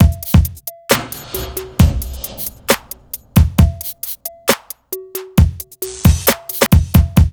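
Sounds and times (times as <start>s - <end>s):
hip hop and R&B beat: 0.0s - 7.3s.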